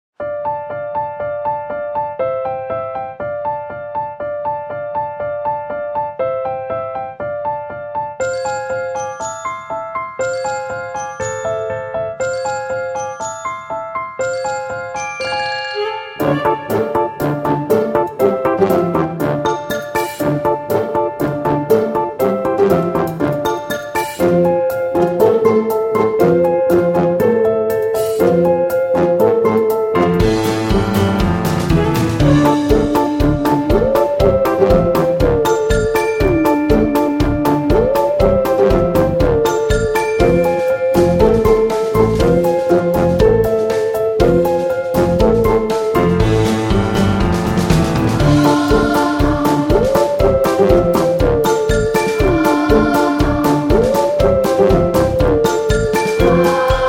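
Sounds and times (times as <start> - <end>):
Halloween music: 0.2 - 56.8.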